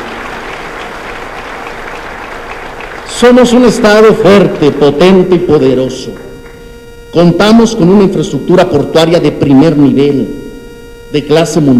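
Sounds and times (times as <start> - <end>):
audience applause: 0.0 - 4.9
speech: 3.2 - 6.3, 7.1 - 10.4, 11.1 - 11.7.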